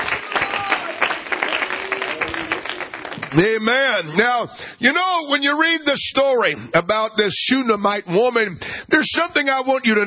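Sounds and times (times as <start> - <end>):
hand clapping: 0.0 - 3.5
speech: 3.3 - 10.0.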